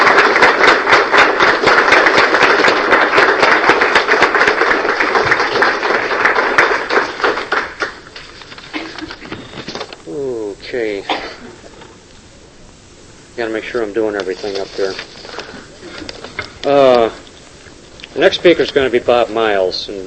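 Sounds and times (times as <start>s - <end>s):
round of applause: 0.0s - 9.2s
speech: 13.4s - 15.2s, 16.7s - 17.2s, 18.2s - 20.0s.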